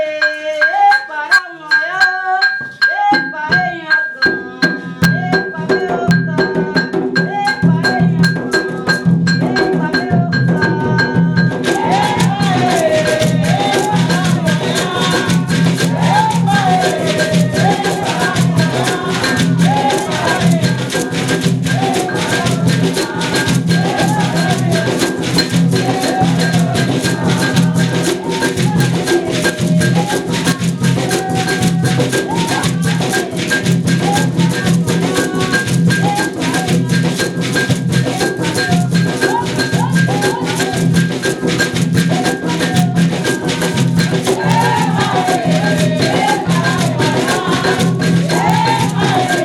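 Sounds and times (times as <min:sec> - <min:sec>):
tambor de mina drumming: 0:00.1 - 0:49.4.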